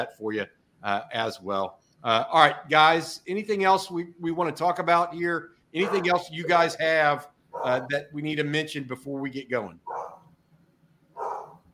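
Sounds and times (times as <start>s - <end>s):
speech: 0.0s - 10.0s
English bulldog barking: 5.8s - 6.2s, 7.6s - 7.9s, 9.9s - 10.2s, 11.2s - 11.6s.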